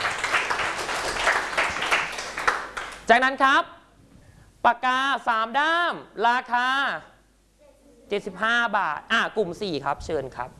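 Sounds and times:
classroom applause for a student: 0.0 - 3.1
speech: 3.1 - 3.8, 4.6 - 7.1, 8.1 - 10.5.

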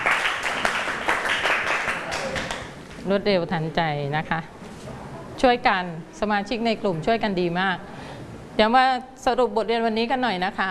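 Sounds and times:
classroom group applauding: 0.0 - 2.8
speech: 3.1 - 4.6, 5.4 - 7.9, 8.6 - 10.6.

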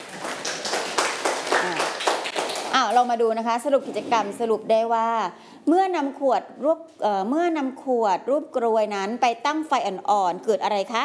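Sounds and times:
students clapping hands during a school science lesson: 0.0 - 3.1
speech: 2.9 - 11.0.

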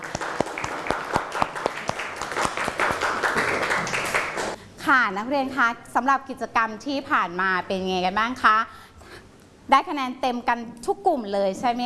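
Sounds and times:
students applauding: 0.0 - 4.6
speech: 4.9 - 8.9, 9.7 - 11.8.

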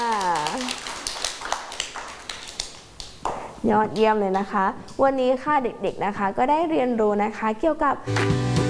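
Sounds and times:
children clapping: 0.0 - 3.4
speech: 3.6 - 8.6.

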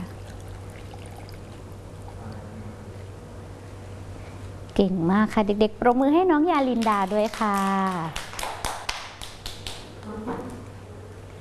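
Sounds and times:
water pouring out of a glass: 0.0 - 2.4
low hum: 0.0 - 11.4
speech: 4.8 - 8.3.

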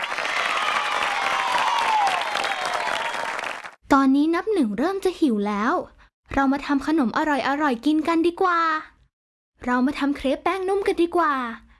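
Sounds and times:
group of children clapping: 0.0 - 3.8
speech: 3.9 - 8.9, 9.6 - 11.6.

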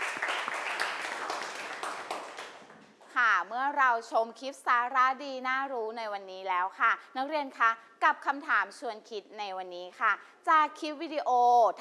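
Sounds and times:
students clapping: 0.0 - 2.9
speech: 3.4 - 11.7.

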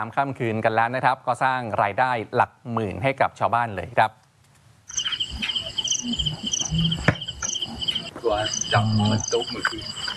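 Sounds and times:
speech: 0.0 - 4.2, 6.0 - 7.2, 8.2 - 10.1
crickets chirping at night in a field: 4.9 - 10.1.

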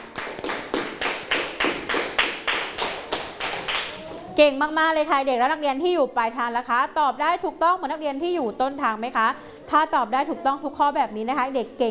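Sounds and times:
students clapping in a classroom: 0.0 - 4.0
speech: 4.4 - 11.8.

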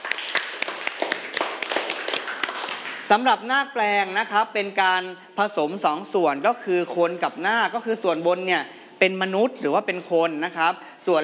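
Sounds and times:
students in a classroom clapping for themselves: 0.0 - 3.1
speech: 3.1 - 11.2.

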